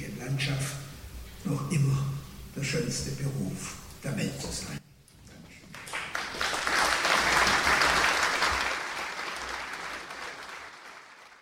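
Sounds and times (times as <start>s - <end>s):
speech: 0.3s - 0.8s, 1.4s - 4.8s
audience applause: 5.7s - 11.4s.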